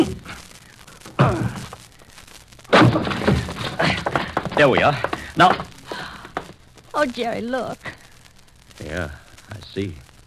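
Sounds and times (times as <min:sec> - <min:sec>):
speech: 0:01.2 - 0:01.7, 0:04.6 - 0:05.7, 0:07.0 - 0:07.9, 0:08.8 - 0:09.2, 0:09.8 - 0:10.0
door being broken in: 0:02.7 - 0:06.6.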